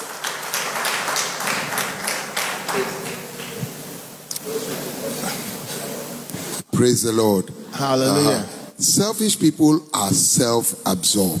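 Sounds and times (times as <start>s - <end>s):
audience applause: 0.0s - 3.7s
speech: 6.8s - 11.3s.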